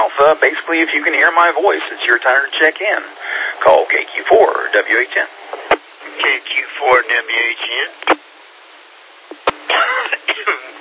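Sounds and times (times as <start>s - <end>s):
speech: 0.2s - 5.4s, 6.2s - 8.2s
man coughing after coffee went down the wrong way: 9.7s - 10.8s.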